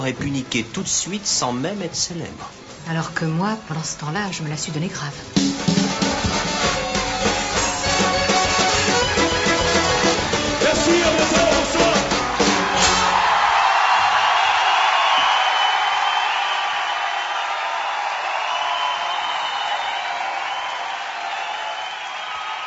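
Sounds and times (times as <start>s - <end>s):
speech: 0.0s - 5.6s
large crowd shouting and cheering at a live concert: 5.6s - 22.6s.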